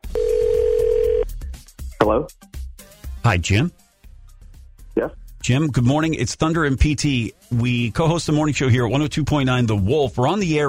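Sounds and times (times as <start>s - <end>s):
telephone dial tone of outgoing call: 0.1s - 1.2s
speech: 2.1s - 2.5s, 3.2s - 3.8s, 5.0s - 10.6s.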